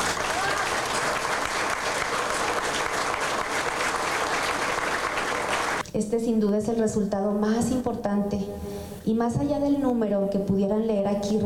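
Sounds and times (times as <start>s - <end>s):
audience applause: 0.0s - 5.8s
speech: 6.1s - 11.4s.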